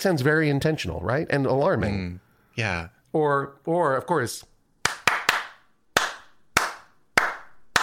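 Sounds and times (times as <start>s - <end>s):
speech: 0.0s - 4.5s
hand claps imitating beaver tail slaps: 4.8s - 7.8s.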